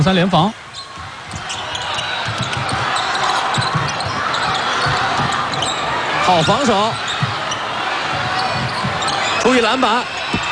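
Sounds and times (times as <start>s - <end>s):
speech: 0.0s - 0.6s, 6.3s - 7.1s, 9.5s - 10.1s
arena noise: 0.0s - 10.5s
basketball dribbled during a Czech versus China game in overtime: 0.9s - 5.8s, 6.4s - 9.2s, 10.2s - 10.5s.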